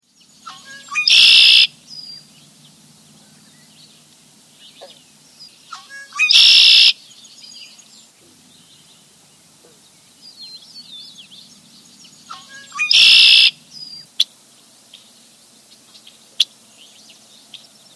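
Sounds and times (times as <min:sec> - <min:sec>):
redwing thin high descending calls: 0:00.4 - 0:02.3, 0:05.7 - 0:07.0, 0:12.2 - 0:14.1.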